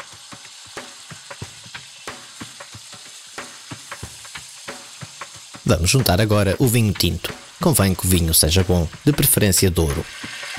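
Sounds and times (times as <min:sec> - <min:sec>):
meat searing in a hot pan: 0:00.0 - 0:10.5
speech: 0:05.7 - 0:10.4.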